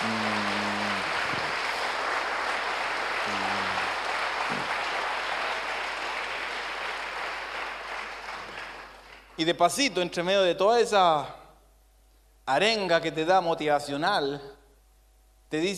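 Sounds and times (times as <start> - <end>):
crowd applauding loudly: 0.0 - 9.4
speech: 9.4 - 11.4, 12.5 - 14.6, 15.5 - 15.7.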